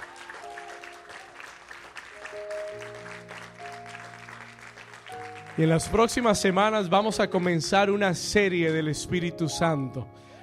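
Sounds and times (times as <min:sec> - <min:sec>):
audience applause: 0:00.0 - 0:07.5
speech: 0:05.6 - 0:10.2.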